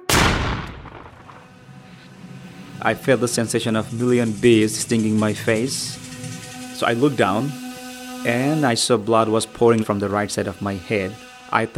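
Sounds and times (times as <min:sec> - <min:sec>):
double-barrel shotgun blast: 0:00.0 - 0:01.6
speech: 0:02.8 - 0:06.1, 0:06.8 - 0:07.6, 0:08.2 - 0:11.7.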